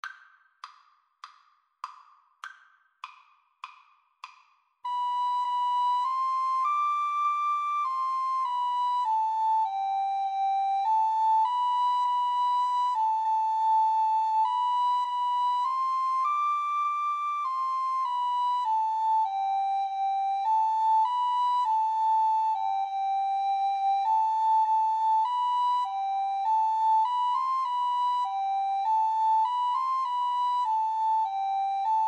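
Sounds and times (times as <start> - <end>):
recorder duet: 4.9 - 32.0.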